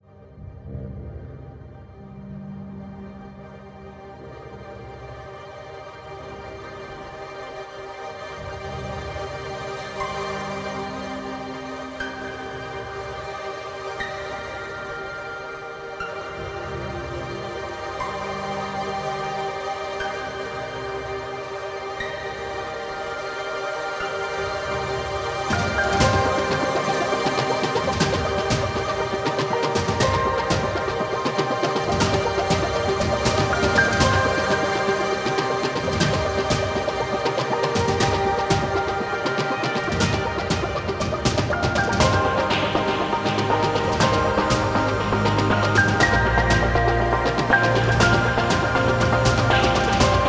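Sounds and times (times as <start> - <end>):
ambient menu music: 10.0 - 50.2.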